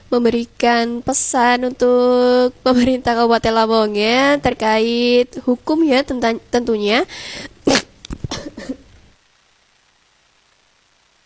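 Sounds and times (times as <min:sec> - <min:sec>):
speech: 0:00.1 - 0:07.8
coughing: 0:07.6 - 0:08.9.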